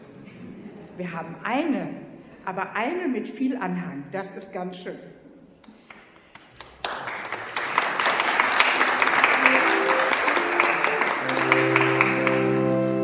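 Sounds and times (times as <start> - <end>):
speech: 1.0 - 5.2
audience clapping: 5.6 - 13.0.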